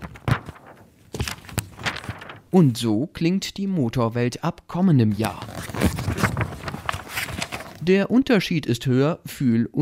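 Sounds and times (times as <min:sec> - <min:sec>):
thin magazine pages being flipped: 0:00.0 - 0:02.5, 0:05.2 - 0:07.9
speech: 0:02.5 - 0:06.2, 0:07.9 - 0:09.8.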